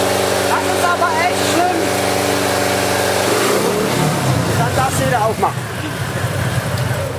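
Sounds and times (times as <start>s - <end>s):
motorcycle engine revving: 0.0s - 7.1s.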